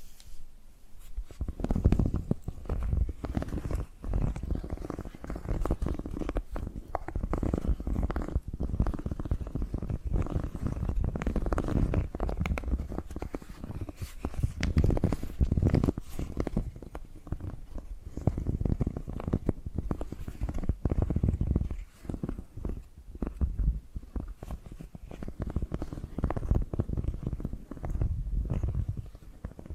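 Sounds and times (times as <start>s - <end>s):
tapping and scratching: 1.2s - 29.7s.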